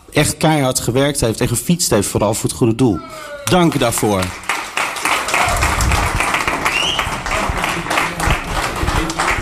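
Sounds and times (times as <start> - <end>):
speech: 0.2 - 4.5
faint cheers: 3.0 - 3.8, 5.2 - 6.0
crowd applauding: 3.4 - 9.4.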